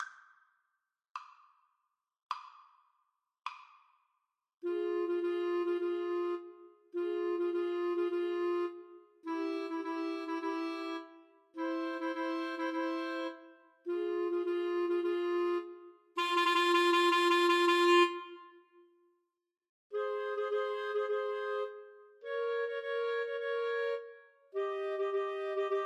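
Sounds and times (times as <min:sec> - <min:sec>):
clarinet trio karaoke backing track: 0:04.7 - 0:18.3, 0:20.0 - 0:25.8.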